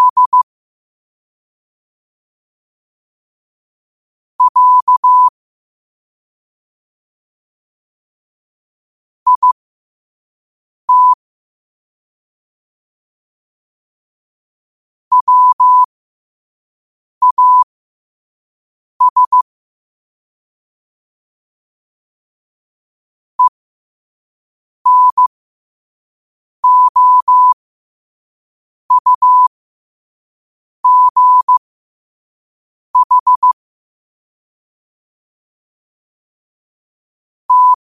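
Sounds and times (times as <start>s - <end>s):
morse code at 5 wpm: 0.0s - 0.4s, 4.4s - 5.3s, 9.3s - 9.6s, 10.9s - 11.2s, 15.1s - 15.9s, 17.2s - 17.6s, 19.0s - 19.4s, 24.9s - 25.3s, 26.6s - 27.6s, 28.9s - 29.5s, 30.8s - 31.6s, 33.0s - 33.6s, 37.5s - 37.8s.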